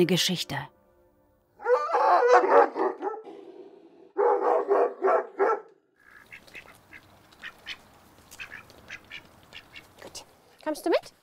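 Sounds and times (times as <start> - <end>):
speech: 0.0 - 0.8, 10.7 - 11.1
Caucasian Ovcharka livestock guardian dog barking: 1.6 - 5.8.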